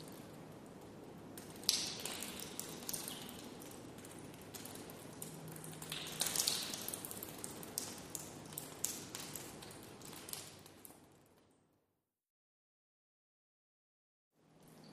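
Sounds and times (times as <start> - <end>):
water dripping indoors: 0.0 - 11.6, 14.4 - 14.9.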